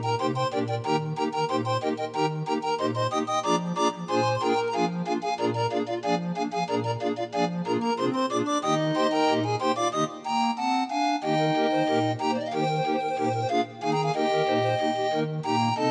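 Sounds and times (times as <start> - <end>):
31-note grind organ playing: 0.0 - 15.8.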